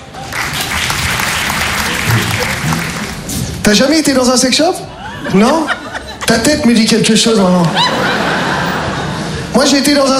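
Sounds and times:
audience applause: 0.0 - 3.6
laughter: 1.3 - 3.4, 4.8 - 9.6
speech: 3.7 - 8.5, 9.6 - 10.1.

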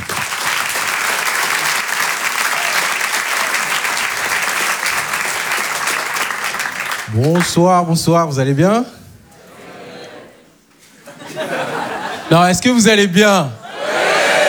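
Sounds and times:
theatre audience applause: 0.0 - 7.8
speech: 7.1 - 9.0, 12.3 - 13.6
laughter: 9.3 - 12.9, 13.6 - 14.4.

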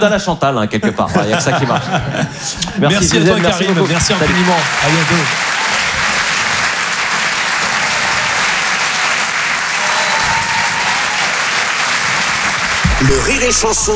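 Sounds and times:
speech: 0.0 - 5.5, 13.0 - 13.9
laughter: 0.8 - 5.4
audience applause: 2.9 - 13.9.

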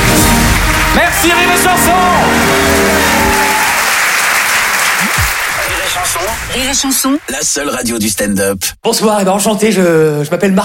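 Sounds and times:
audience applause: 0.0 - 7.5
speech: 1.0 - 3.0, 5.9 - 10.6.

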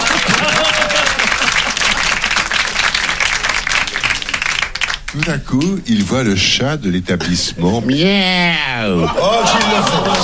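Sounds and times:
laughter: 0.0 - 2.1, 7.2 - 10.2
audience applause: 0.0 - 5.7, 9.2 - 10.2
speech: 5.2 - 10.2.

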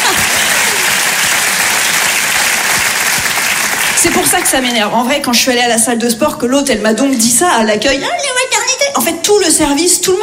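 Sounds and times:
crowd applause: 0.0 - 4.8
speech: 4.0 - 10.2.

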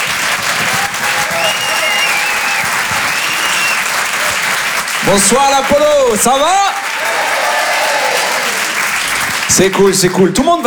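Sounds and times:
thin whistles: 0.0 - 4.9
theatre audience applauding at a packed comedy show: 0.0 - 10.6
speech: 5.1 - 6.8, 9.5 - 10.6.

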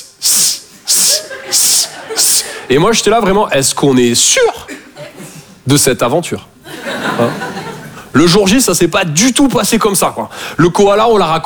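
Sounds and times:
person imitating snake hiss: 0.0 - 2.6
laughter: 0.8 - 3.2, 4.4 - 5.6, 6.6 - 8.1
speech: 1.5 - 4.8, 5.6 - 6.5, 7.2 - 7.5, 8.1 - 11.4.

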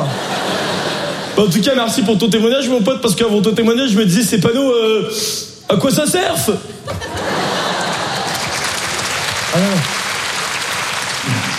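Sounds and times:
laughter: 0.0 - 1.6, 6.8 - 10.0
speech: 1.4 - 7.3
crowd applauding: 7.2 - 11.5.

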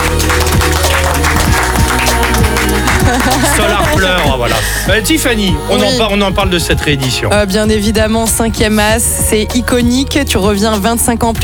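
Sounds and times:
audience applause welcoming a guest: 0.0 - 4.9
laughter: 0.0 - 6.4
speech: 4.4 - 11.4.

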